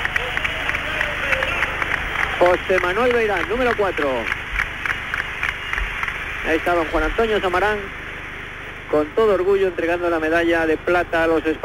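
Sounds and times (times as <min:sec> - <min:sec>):
Olympic crowd applauding Spain's basketball team at the 1984 Games: 0:00.0 - 0:07.0
light cheering: 0:00.0 - 0:07.6
speech: 0:02.4 - 0:04.4, 0:06.4 - 0:08.0, 0:08.9 - 0:11.6.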